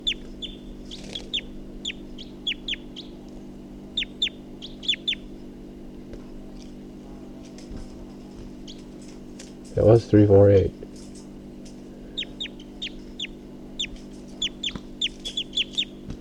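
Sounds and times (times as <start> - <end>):
sharp high-pitched bird calls: 0.0 - 5.4, 8.6 - 9.0, 12.0 - 16.1
steady low hum: 0.0 - 16.1
speech: 9.8 - 10.8.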